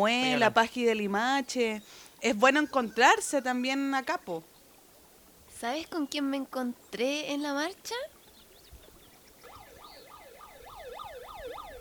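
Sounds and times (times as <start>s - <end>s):
speech: 0.0s - 4.5s, 5.6s - 8.2s
alarm siren yelping: 9.4s - 11.8s.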